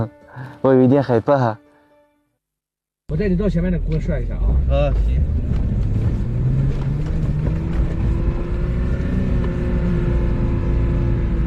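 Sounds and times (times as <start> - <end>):
speech: 0.0 - 1.6, 3.1 - 5.6
off-road car engine revving under heavy throttle in sand: 4.4 - 11.4.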